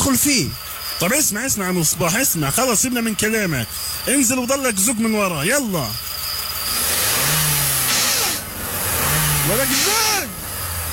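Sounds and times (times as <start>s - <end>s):
speech: 0.1s - 6.1s, 9.5s - 10.1s
car engine revving hard while stuck on a muddy road: 2.4s - 10.9s.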